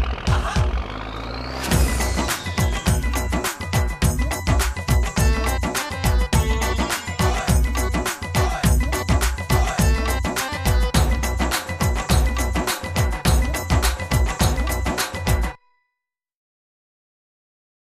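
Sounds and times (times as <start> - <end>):
instrumental music: 1.7 - 15.8.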